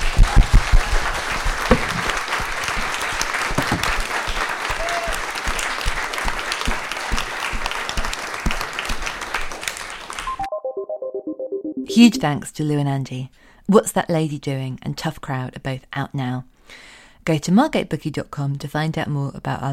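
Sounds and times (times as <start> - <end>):
audience applause: 0.0 - 10.4
speech: 12.0 - 19.7.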